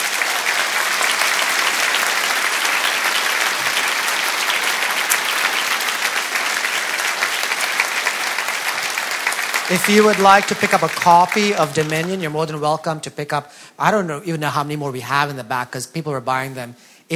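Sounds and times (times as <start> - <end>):
audience applause thanking a speaker after a talk: 0.0 - 12.7
speech: 9.7 - 17.1.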